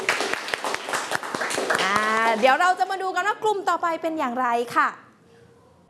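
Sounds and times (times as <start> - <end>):
classroom applause: 0.0 - 2.4
speech: 2.4 - 5.0.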